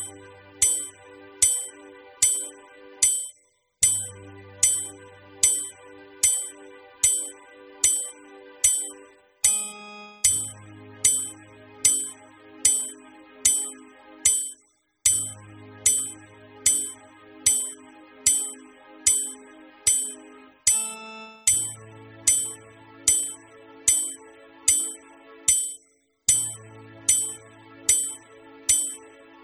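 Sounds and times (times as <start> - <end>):
warm up exercises playalong: 0.0 - 29.0.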